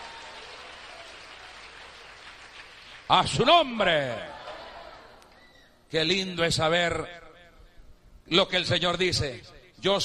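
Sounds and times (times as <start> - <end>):
audience applauding: 0.0 - 3.3
speech: 3.1 - 4.3, 5.9 - 7.2, 8.3 - 10.0
laughter: 4.2 - 5.4.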